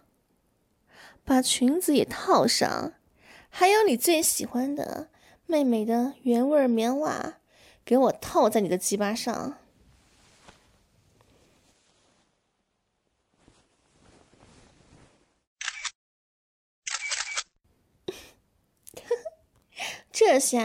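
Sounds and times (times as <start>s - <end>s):
speech: 1.1s - 9.6s, 20.3s - 20.6s
faint low rustling: 9.7s - 15.5s
camera shutter firing as photos are taken: 16.9s - 17.5s.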